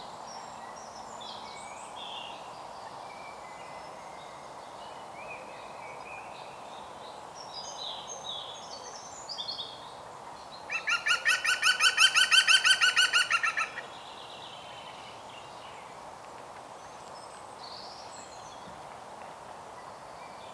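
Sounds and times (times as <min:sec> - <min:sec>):
European green woodpecker Picus viridis laughing calls: 0:10.7 - 0:13.9.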